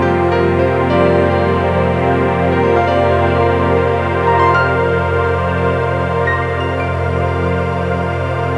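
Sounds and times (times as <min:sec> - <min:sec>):
mystical music ringtone: 0:00.1 - 0:08.5.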